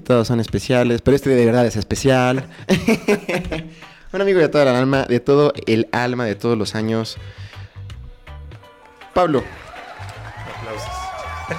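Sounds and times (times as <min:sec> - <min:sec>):
speech: 0:00.1 - 0:07.5, 0:09.2 - 0:09.7
laughter: 0:02.7 - 0:03.7, 0:10.8 - 0:11.5
crowd applause: 0:09.2 - 0:11.5
cheering and whoops: 0:09.4 - 0:11.5
overlapping voices: 0:09.5 - 0:11.5.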